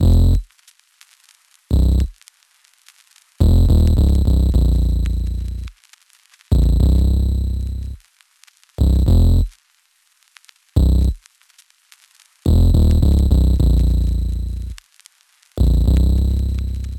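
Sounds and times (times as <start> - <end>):
bass: 0.0 - 0.4, 1.7 - 2.1, 3.4 - 5.7, 6.5 - 8.0, 8.8 - 9.5, 10.8 - 11.2, 12.5 - 14.8, 15.6 - 16.9.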